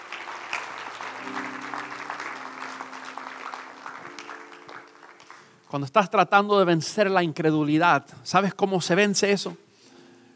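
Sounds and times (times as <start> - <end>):
audience applause: 0.0 - 5.7
speech: 5.7 - 9.6.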